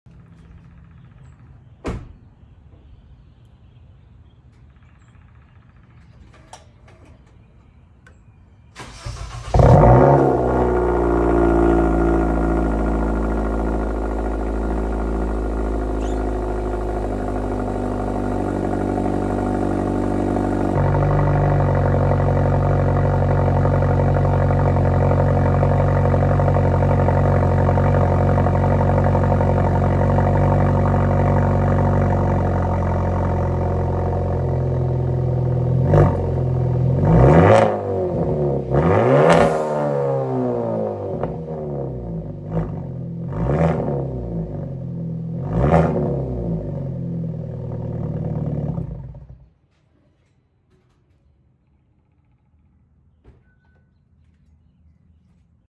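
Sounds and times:
Hyundai Elantra exhaust: 8.9s - 49.4s.

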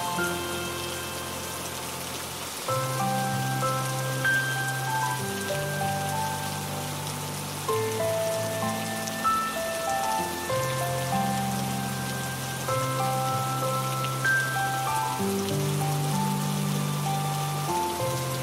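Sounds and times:
piano: 0.0s - 18.4s
rain: 0.0s - 18.4s.

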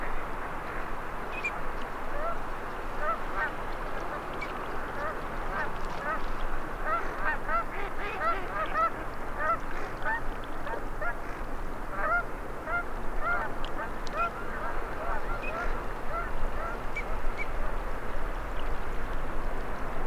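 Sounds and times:
steady noise: 0.0s - 20.0s
flock of ducks quacking and honking: 3.0s - 17.5s.

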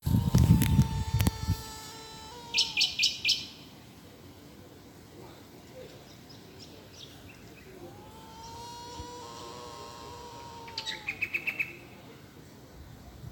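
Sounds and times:
bush stone-curlew calling with mournful whistled wails: 0.0s - 3.6s, 7.6s - 12.1s.

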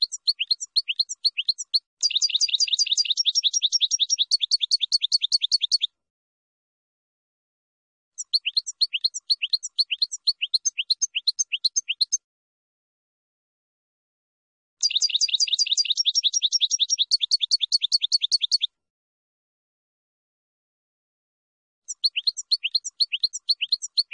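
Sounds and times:
finch song: 0.0s - 6.0s, 8.2s - 12.2s, 14.8s - 18.8s, 21.8s - 24.1s.

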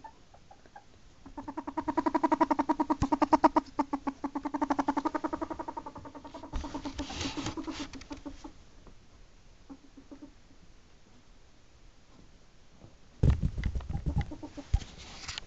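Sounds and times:
ferret giving rapid irregular clucking pulses: 0.0s - 8.6s, 9.6s - 10.4s, 13.7s - 15.0s.

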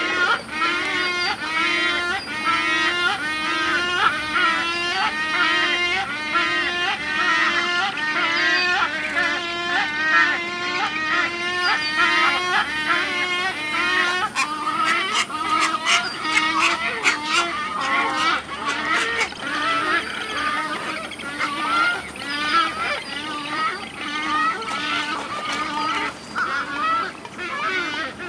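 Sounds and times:
wood storks calling in chorus: 0.0s - 28.2s.

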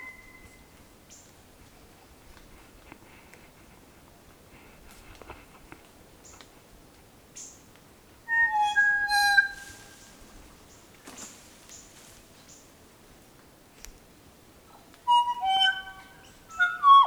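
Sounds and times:
kokako singing: 8.3s - 10.2s, 15.1s - 17.0s.

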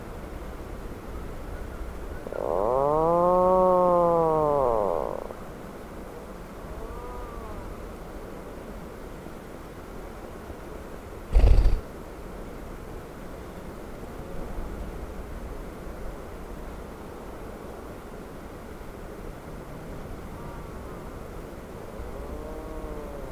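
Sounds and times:
Atlantic puffin moaning call: 2.2s - 5.5s, 6.6s - 7.9s, 22.0s - 23.3s.

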